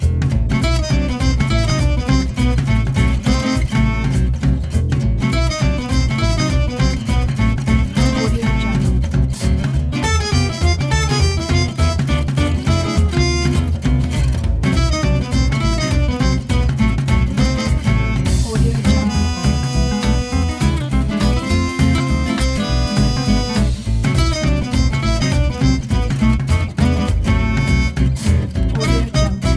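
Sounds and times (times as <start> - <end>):
swinging tune: 0.1 - 29.5.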